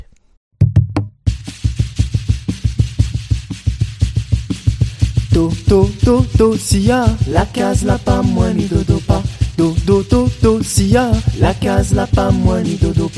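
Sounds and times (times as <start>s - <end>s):
kayamb rattle instrument in Réunion song: 1.3s - 13.1s
person singing Réunion song: 5.3s - 13.1s
speech: 5.4s - 13.1s.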